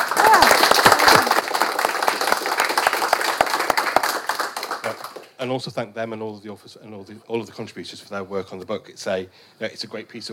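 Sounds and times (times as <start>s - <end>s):
audience round of applause: 0.0s - 5.3s
speech: 5.4s - 10.3s.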